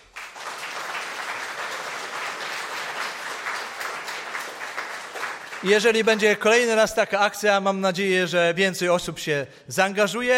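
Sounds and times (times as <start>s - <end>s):
applause: 0.0s - 6.7s
speech: 5.6s - 10.3s.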